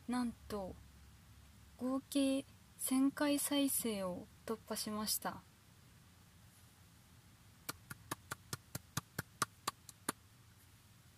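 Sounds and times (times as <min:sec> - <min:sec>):
speech: 0:00.1 - 0:00.8, 0:01.8 - 0:05.5
hand clapping: 0:07.7 - 0:10.2.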